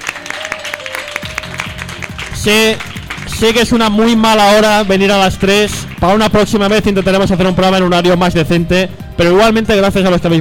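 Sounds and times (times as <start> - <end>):
audience applauding: 0.0 - 7.3
speech: 2.4 - 10.3.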